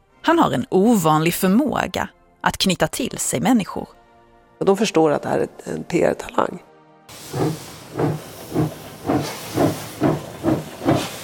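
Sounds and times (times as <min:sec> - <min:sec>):
speech: 0:00.2 - 0:04.0, 0:04.6 - 0:06.7, 0:07.3 - 0:08.2
steam locomotive chuffing as the train pulls away: 0:07.1 - 0:11.2.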